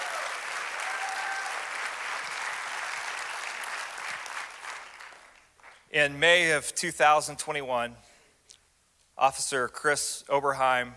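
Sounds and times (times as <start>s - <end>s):
audience applause at a ceremony honoring officers: 0.0s - 5.8s
speech: 5.9s - 8.1s, 9.2s - 10.9s.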